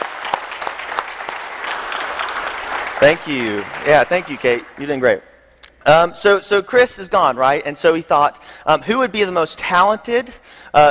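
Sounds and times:
audience applause: 0.0 - 5.0
speech: 3.0 - 10.8.

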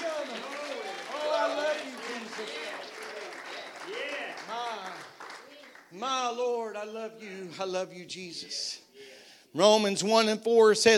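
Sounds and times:
audience clapping hands: 0.0 - 6.4
speech: 6.0 - 8.8, 9.5 - 10.9.

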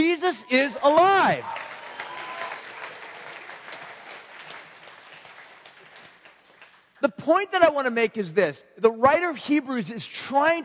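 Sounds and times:
speech: 0.0 - 1.7, 7.0 - 10.6
audience clapping: 0.9 - 7.0.

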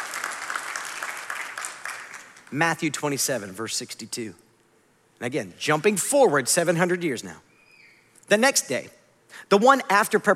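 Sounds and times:
audience clapping: 0.0 - 2.8
speech: 2.5 - 4.4, 5.2 - 7.5, 8.3 - 10.3.

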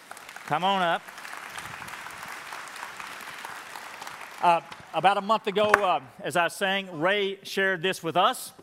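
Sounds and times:
audience applause: 0.0 - 6.1
speech: 0.5 - 1.2, 4.4 - 8.6.

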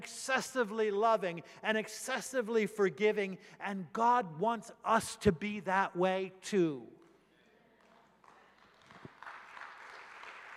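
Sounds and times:
speech: 0.0 - 7.0
soft golf clap applause from a modest crowd: 8.1 - 10.5.

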